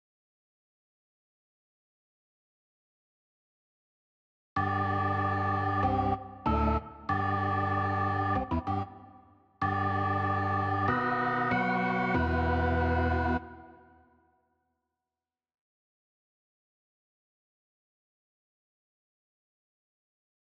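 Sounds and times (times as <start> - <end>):
organ: 4.6 - 8.9, 9.6 - 13.6.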